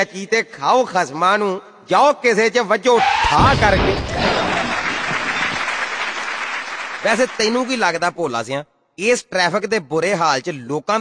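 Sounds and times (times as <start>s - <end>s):
speech: 0.0s - 4.2s, 7.0s - 11.0s
audience applause: 4.1s - 8.2s.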